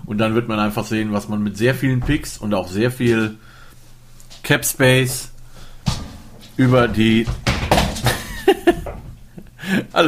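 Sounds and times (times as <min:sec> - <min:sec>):
speech: 0:00.1 - 0:03.6, 0:04.4 - 0:05.3, 0:06.6 - 0:07.5, 0:09.7 - 0:10.0
water bottle knocked over by dog clattering to the floor: 0:05.9 - 0:09.2
laughter: 0:08.1 - 0:09.0.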